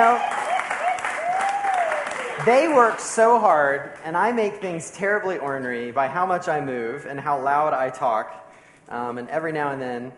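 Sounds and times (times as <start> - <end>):
audience applause: 0.0 - 3.1
speech: 2.4 - 10.1.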